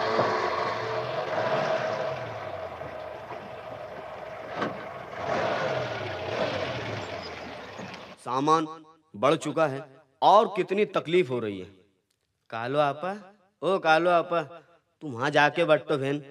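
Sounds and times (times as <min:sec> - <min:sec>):
truck engine rumbling and revving: 0:00.0 - 0:08.3
speech: 0:08.3 - 0:11.8, 0:12.5 - 0:16.2.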